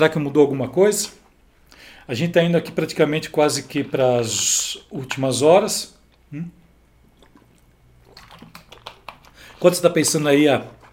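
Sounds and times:
speech: 0.0 - 1.2, 1.8 - 6.6, 9.6 - 10.8
person drinking water: 6.0 - 9.7.

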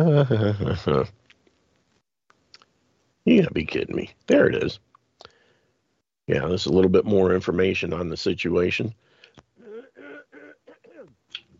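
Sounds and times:
speech: 0.0 - 1.2, 3.2 - 4.9, 6.3 - 9.0
man clearing throat: 9.6 - 11.2.

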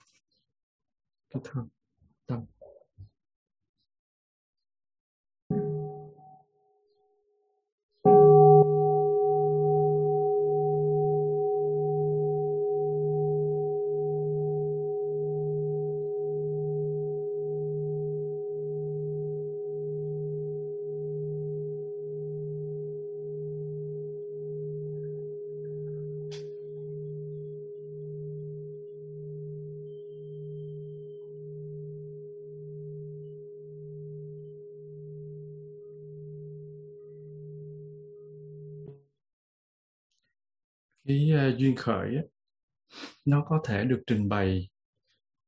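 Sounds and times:
speech: 1.3 - 2.6, 41.6 - 42.3, 42.9 - 44.7
meditation bell being struck and ringing: 8.0 - 38.8.

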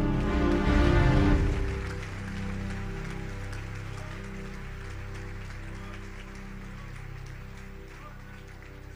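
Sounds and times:
church audience applauding: 0.0 - 8.9.

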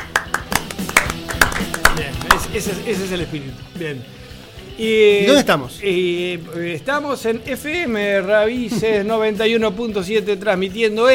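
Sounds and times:
applause: 0.0 - 2.5
speech: 2.0 - 4.2, 4.8 - 11.1.

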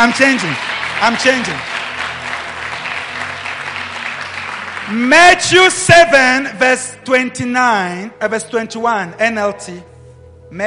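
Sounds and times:
speech: 0.0 - 1.8, 4.9 - 9.9
audience clapping: 0.0 - 6.2.

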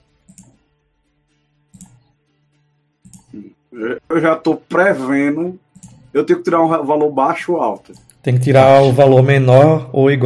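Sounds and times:
computer mouse clicks opening a character sheet: 0.2 - 0.6, 1.7 - 2.1, 3.0 - 3.4, 5.7 - 6.2, 7.8 - 9.0
speech: 3.4 - 10.2.

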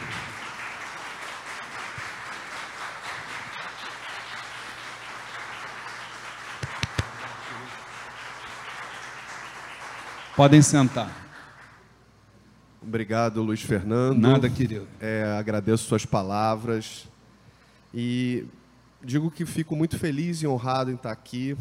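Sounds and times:
applause from a standing audience: 0.0 - 11.9
speech: 10.4 - 11.2, 12.9 - 17.1, 18.0 - 21.5.

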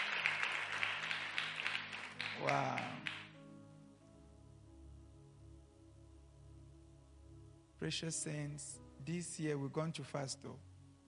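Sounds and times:
audience clapping: 0.0 - 3.4
speech: 2.4 - 3.1, 7.8 - 10.7.

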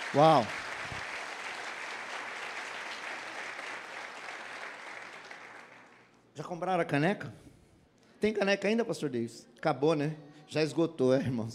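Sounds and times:
audience applause: 0.0 - 6.1
speech: 0.1 - 0.6, 6.4 - 7.5, 8.2 - 11.5.

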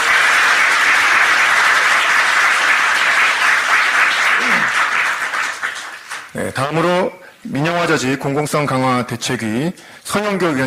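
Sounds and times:
applause: 0.0 - 6.5
speech: 6.4 - 10.6.

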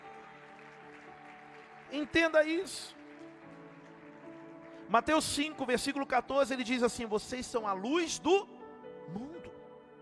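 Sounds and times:
audience applause: 0.0 - 6.1
speech: 1.9 - 3.0, 4.9 - 8.5, 9.1 - 9.3.

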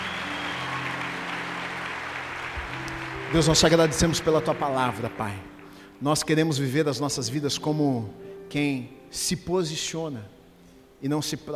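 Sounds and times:
audience applause: 0.0 - 5.9
speech: 3.3 - 10.4, 11.0 - 11.5.

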